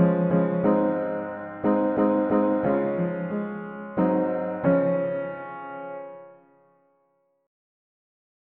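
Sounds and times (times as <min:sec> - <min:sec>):
mono piano playing hymns: 0:00.0 - 0:06.6.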